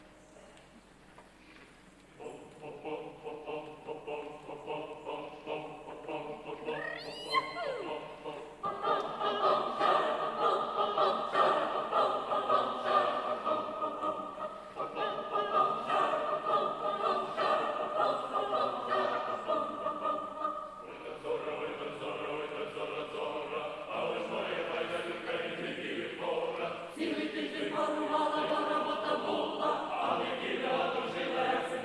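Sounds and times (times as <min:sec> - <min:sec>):
symphonic choir and orchestra: 0:02.2 - 0:31.8.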